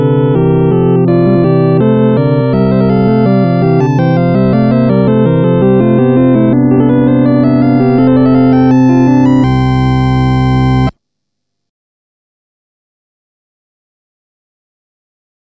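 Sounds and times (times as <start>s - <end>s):
harpsichord fugue: 0.0s - 10.9s.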